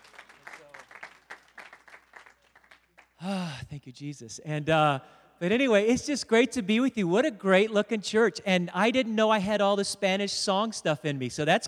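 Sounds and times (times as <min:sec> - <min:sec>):
audience applause: 0:00.0 - 0:03.3
speech: 0:03.2 - 0:11.6.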